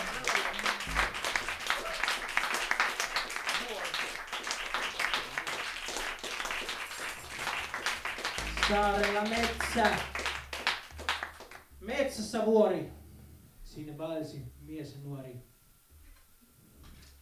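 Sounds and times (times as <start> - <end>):
audience applause: 0.0 - 11.7
speech: 8.7 - 10.2, 11.9 - 13.0, 13.8 - 15.5.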